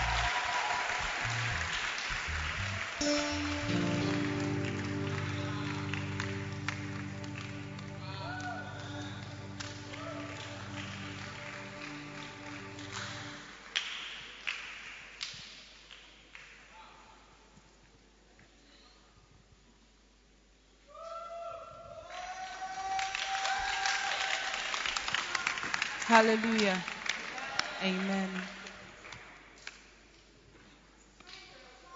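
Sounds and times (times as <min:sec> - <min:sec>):
audience clapping: 0:00.0 - 0:16.7, 0:22.4 - 0:30.1
sustained keyboard chord: 0:01.3 - 0:13.6
speech: 0:26.1 - 0:26.9, 0:27.8 - 0:28.6.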